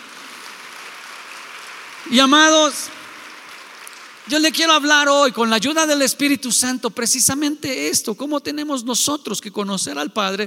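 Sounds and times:
audience clapping: 0.0 - 5.9
speech: 2.0 - 3.0, 4.2 - 10.4.

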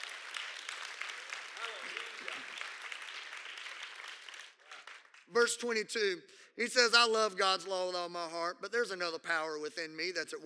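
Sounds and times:
audience clapping: 0.0 - 5.7
speech: 5.3 - 10.4.

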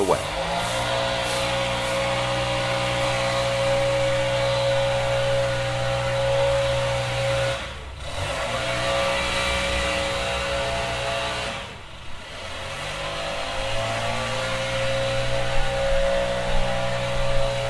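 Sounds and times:
neighbor's leaf blower running across the street: 0.0 - 17.6.

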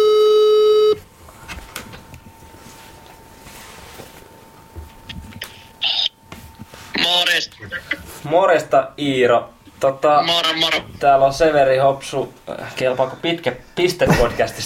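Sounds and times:
electronic telephone tone as a call is placed: 0.0 - 1.0
quiet telephone line noise with a faint thin hum: 0.0 - 14.6
speech: 8.3 - 14.6.

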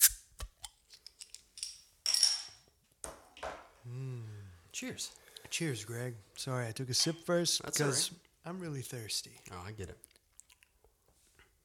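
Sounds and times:
beer bottle opened with bottle opener: 0.0 - 0.8
speech: 3.9 - 10.1.

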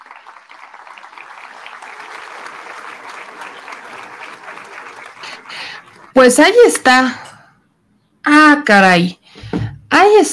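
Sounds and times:
audience clapping: 0.0 - 6.8
speech: 6.1 - 7.2, 8.4 - 9.2, 10.0 - 10.3.

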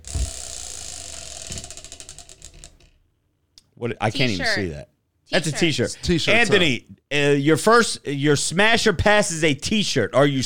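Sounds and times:
spinning wheel clicking: 0.0 - 2.9
speech: 3.8 - 10.4.

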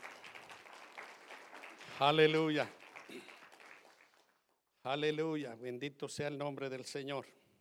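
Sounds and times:
audience applause: 0.0 - 4.4
speech: 2.0 - 3.3, 4.8 - 7.4.

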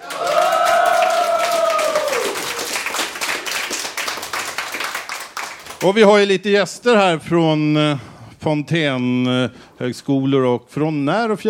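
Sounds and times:
audience applause: 0.0 - 5.9
speech: 5.8 - 11.4.

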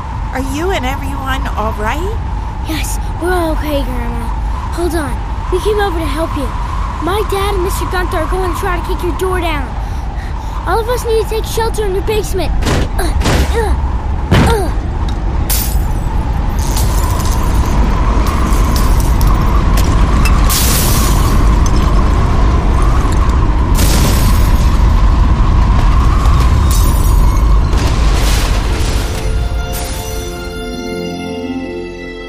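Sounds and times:
violent storm wind: 0.0 - 29.8
speech: 0.4 - 9.8, 10.6 - 14.8
crashing bursts: 15.5 - 30.6.

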